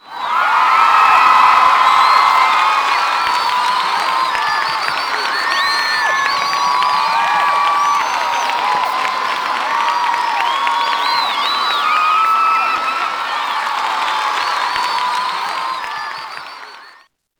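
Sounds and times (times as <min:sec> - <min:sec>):
laughter: 0:00.0 - 0:17.0
scoreboard cheer: 0:00.0 - 0:17.1.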